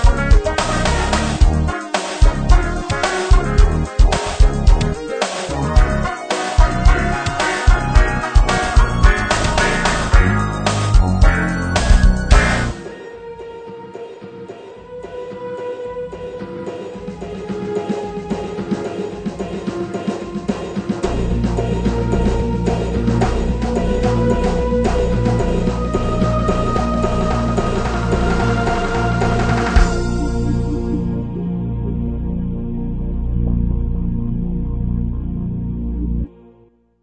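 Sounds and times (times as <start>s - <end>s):
K2600 synthesizer introduction demo: 0.0s - 13.1s, 21.0s - 36.7s.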